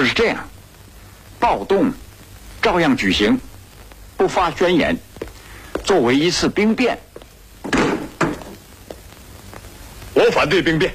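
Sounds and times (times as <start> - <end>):
speech: 0.1 - 0.5, 1.4 - 2.0, 2.6 - 3.5, 4.2 - 5.1, 5.8 - 7.8, 10.2 - 10.9
door pushed open with heavy wooden thumps: 7.6 - 8.6.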